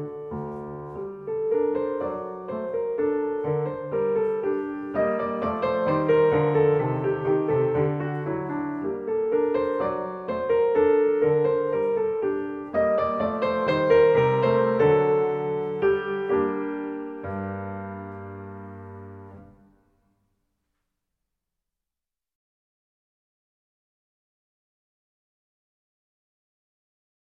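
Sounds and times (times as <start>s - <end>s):
solo piano gavotte in G minor: 0.0s - 20.0s.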